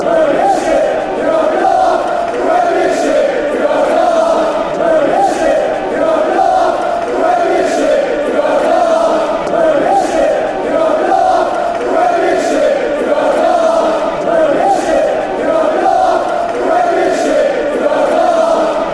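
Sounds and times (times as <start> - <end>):
football fans chanting: 0.0 - 18.9.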